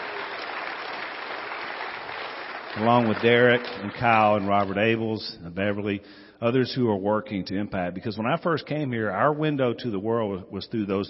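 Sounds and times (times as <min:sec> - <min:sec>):
audience applause: 0:00.0 - 0:05.0
speech: 0:02.8 - 0:11.0.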